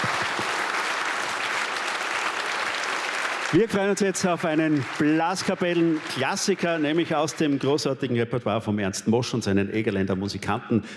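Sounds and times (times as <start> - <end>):
audience applause: 0.0 - 7.9
speech: 3.5 - 10.9.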